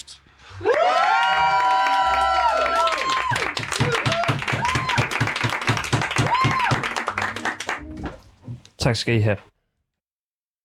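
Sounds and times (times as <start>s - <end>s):
audience cheering with whoops and shouts: 0.6s - 8.0s
dense rhythmic clapping: 1.8s - 8.3s
speech: 8.8s - 9.5s.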